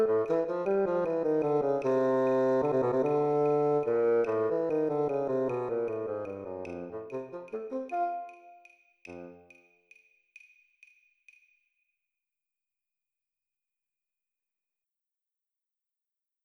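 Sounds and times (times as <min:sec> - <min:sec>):
bass clarinet playing: 0:00.0 - 0:09.5.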